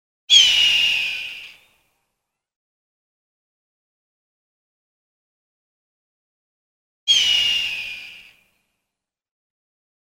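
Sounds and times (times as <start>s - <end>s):
hawk giving a raspy drawn-out scream: 0.3s - 1.6s, 7.1s - 8.4s.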